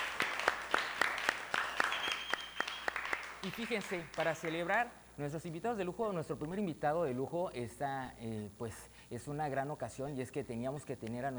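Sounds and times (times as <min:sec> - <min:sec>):
applause: 0:00.0 - 0:04.7
speech: 0:03.4 - 0:11.3.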